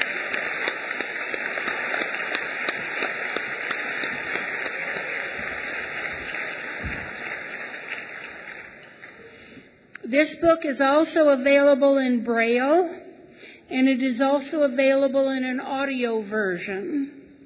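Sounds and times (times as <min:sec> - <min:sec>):
audience applause: 0:00.0 - 0:09.6
speech: 0:10.1 - 0:13.0, 0:13.7 - 0:17.2.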